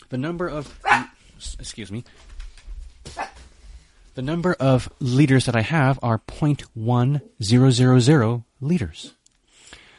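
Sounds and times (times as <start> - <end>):
speech: 0.1 - 2.4, 4.2 - 9.2
dog barking: 0.8 - 1.2, 3.2 - 3.4.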